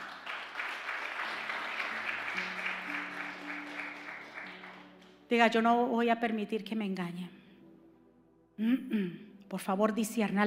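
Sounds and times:
audience applause: 0.0 - 5.2
speech: 5.3 - 7.4, 8.6 - 10.4.

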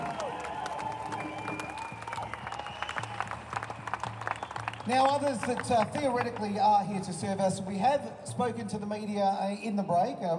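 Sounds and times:
crowd cheering and whistling: 0.0 - 6.1
crowd applause: 0.0 - 6.8
speech: 4.9 - 10.3.

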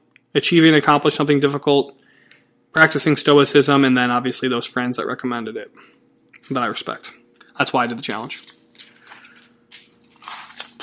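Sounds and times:
speech: 0.4 - 2.0, 2.8 - 8.6
page turning: 8.0 - 10.8.

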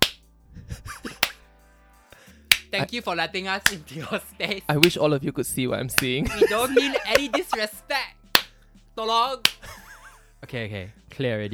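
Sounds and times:
hand claps to cleanse the air: 0.0 - 0.3, 1.0 - 1.4, 2.1 - 3.0, 3.6 - 3.9, 4.8 - 5.0, 6.0 - 7.7, 8.3 - 8.6, 9.4 - 9.8
laughter: 0.6 - 1.4, 3.8 - 4.9, 6.0 - 8.0, 9.6 - 10.9
speech: 2.7 - 8.1, 9.0 - 9.6, 10.4 - 11.5.

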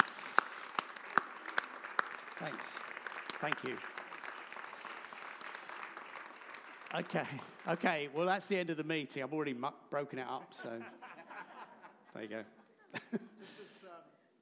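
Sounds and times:
audience clapping: 0.0 - 8.5
speech: 2.4 - 4.0, 6.9 - 11.0, 12.1 - 13.6
laughter: 10.4 - 13.9.

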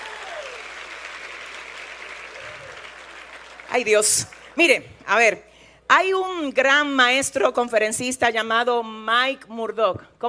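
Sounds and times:
audience applause: 0.0 - 4.5
speech: 3.7 - 10.2.

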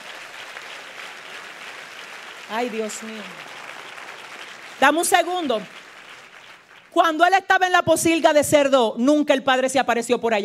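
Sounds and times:
audience applause: 0.0 - 7.1
speech: 2.5 - 3.6, 4.8 - 5.8, 6.9 - 10.4.

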